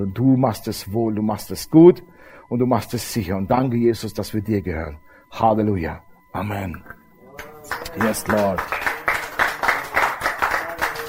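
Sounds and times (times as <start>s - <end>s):
speech: 0.0s - 7.0s, 7.7s - 8.8s
church service audience clapping in a steady rhythmic beat: 7.4s - 11.0s.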